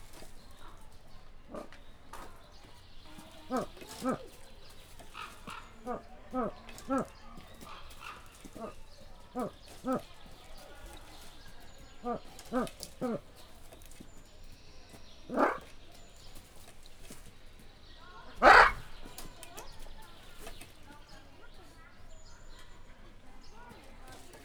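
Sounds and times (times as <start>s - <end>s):
white eared pheasants calling in deep voices: 0.1s - 13.7s, 14.9s - 16.2s, 18.0s - 20.6s.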